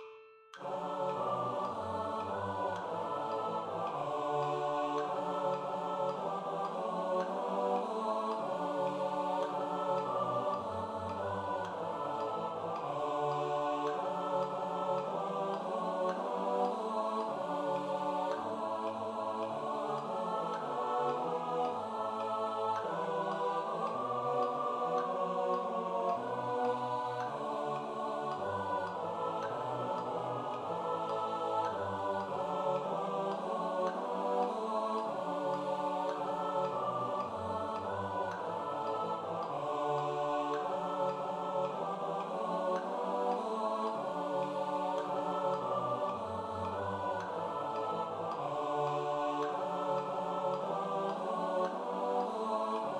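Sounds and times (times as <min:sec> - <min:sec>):
SATB four-part choir singing: 0:00.5 - 0:52.9.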